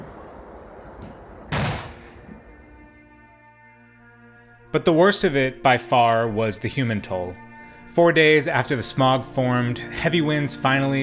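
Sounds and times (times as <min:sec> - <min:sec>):
railway detonator warning explosions: 0:00.0 - 0:02.7
speech: 0:04.7 - 0:11.0.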